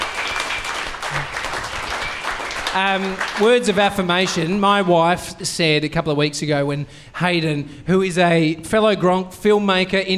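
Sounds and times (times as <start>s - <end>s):
audience applause: 0.0s - 4.6s
speech: 2.8s - 10.1s.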